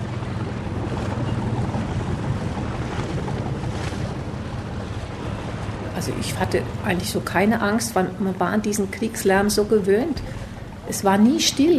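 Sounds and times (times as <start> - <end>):
wind noise: 0.0 - 7.8
ship engine droning while moving slowly along a river: 0.0 - 11.7
water washing: 0.0 - 11.7
speech: 6.0 - 11.7.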